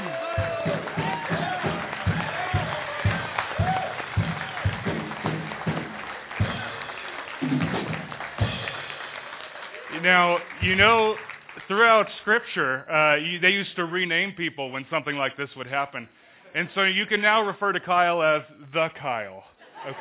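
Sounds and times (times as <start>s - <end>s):
scattered whoops and cheering voices: 0.0s - 4.9s
crowd applause: 0.0s - 12.1s
speech: 10.1s - 19.9s
laughter: 19.6s - 19.9s.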